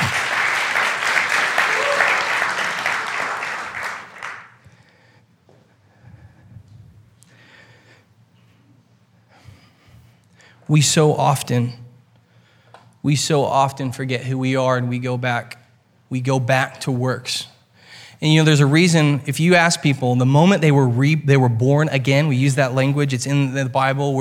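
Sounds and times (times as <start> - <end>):
audience applause: 0.0 - 4.6
speech: 10.7 - 11.8, 13.0 - 17.5, 18.2 - 24.1.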